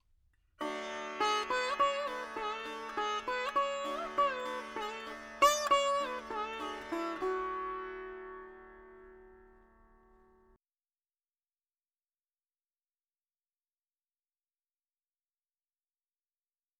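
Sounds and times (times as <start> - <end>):
dry veena melody: 0.6 - 10.6.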